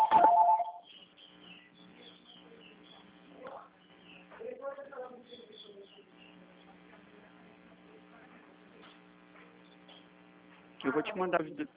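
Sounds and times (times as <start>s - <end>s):
telephone ringing: 0.0s - 0.8s
speech: 10.8s - 11.7s.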